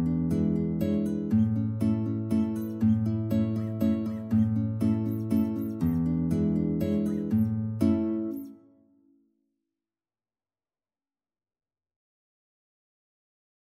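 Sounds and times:
two guitars playing: 0.0s - 8.8s.

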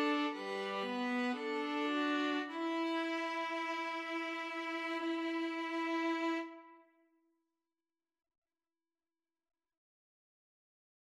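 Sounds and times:
violin and viola duet: 0.0s - 6.8s.

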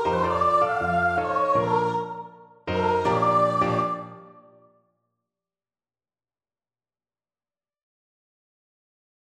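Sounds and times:
ragtime piano piece: 0.0s - 4.7s.

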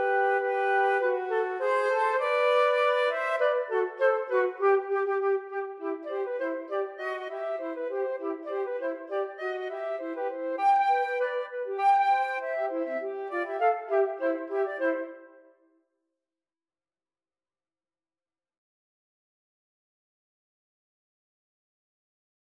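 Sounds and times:
flute duet: 0.0s - 15.6s.

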